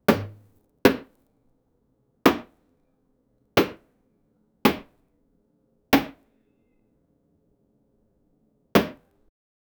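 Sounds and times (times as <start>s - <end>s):
thousands of bananas hitting: 0.1s - 1.1s, 2.3s - 2.5s, 3.6s - 3.8s, 4.7s - 4.9s, 6.0s - 6.2s, 8.8s - 9.0s.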